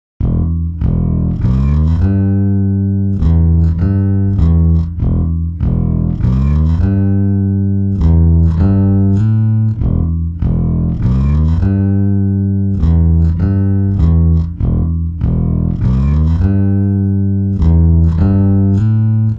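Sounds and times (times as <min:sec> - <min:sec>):
bass: 0:00.0 - 0:19.3.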